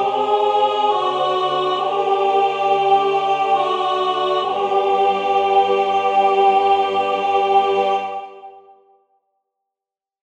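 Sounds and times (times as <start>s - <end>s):
alto voice singing: 0.0s - 8.8s.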